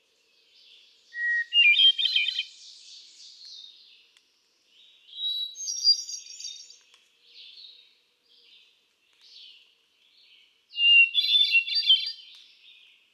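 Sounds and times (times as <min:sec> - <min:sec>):
hermit thrush singing: 0:00.0 - 0:13.1.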